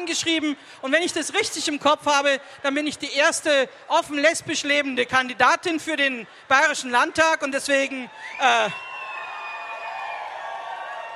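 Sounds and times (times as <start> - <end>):
speech: 0.0 - 8.9
crowd cheering and applauding: 8.0 - 11.1.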